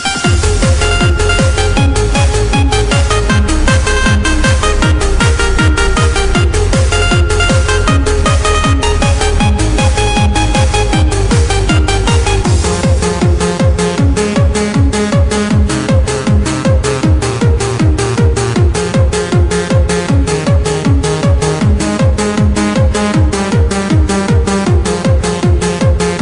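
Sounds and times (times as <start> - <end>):
techno remix: 0.0 - 26.2.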